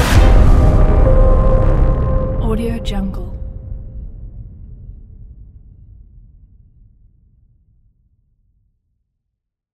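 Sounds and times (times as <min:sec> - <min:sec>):
suspense trailer music: 0:00.0 - 0:05.4.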